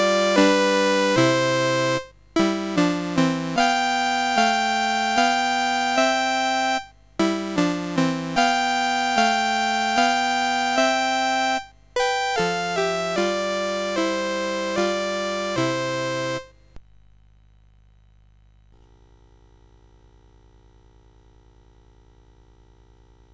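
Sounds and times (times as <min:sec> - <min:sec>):
minuet on CSG8580R5 sound chip: 0:00.0 - 0:16.5.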